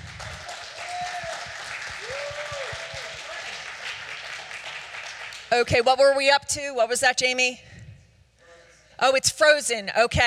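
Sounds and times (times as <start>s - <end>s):
audience applause: 0.0s - 5.5s
voices whooping: 0.6s - 3.6s
speech: 5.5s - 7.7s, 9.0s - 10.2s.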